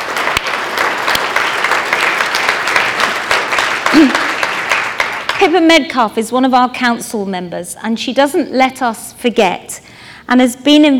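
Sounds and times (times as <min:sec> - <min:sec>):
audience round of applause: 0:00.0 - 0:05.4
speech: 0:03.9 - 0:04.2, 0:05.4 - 0:10.9.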